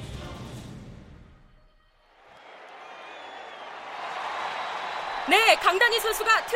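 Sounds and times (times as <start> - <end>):
stadium crowd cheering: 2.0 - 6.5
speech: 5.8 - 6.5.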